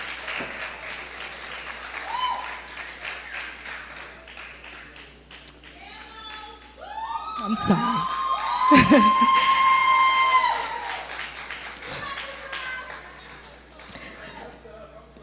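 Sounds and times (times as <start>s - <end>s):
audience applause for a performer at a gospel gathering: 0.0s - 14.5s
speech: 0.4s - 0.6s, 7.4s - 8.1s, 8.7s - 9.5s
laughter: 8.6s - 9.8s, 11.8s - 14.8s.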